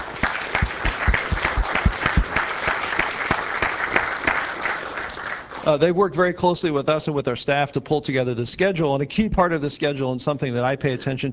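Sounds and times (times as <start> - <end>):
audience applause: 0.0 - 5.7
speech: 5.7 - 11.3.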